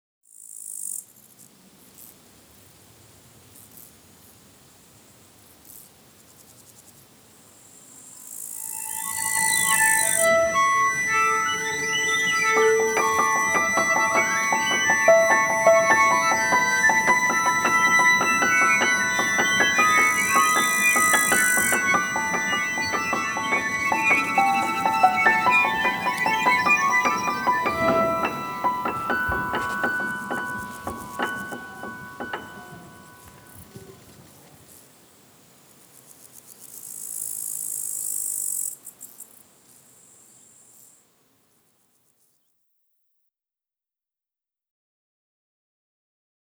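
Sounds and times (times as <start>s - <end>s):
fairy music: 8.6s - 34.6s.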